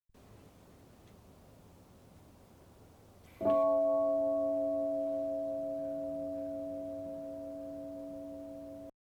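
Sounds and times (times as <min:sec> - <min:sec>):
bell ringing: 0:03.4 - 0:08.9.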